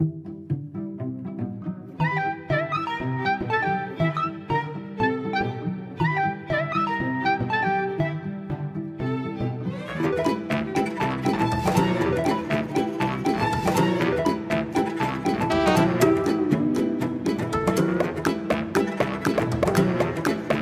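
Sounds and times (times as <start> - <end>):
ambient music: 0.0 - 20.6.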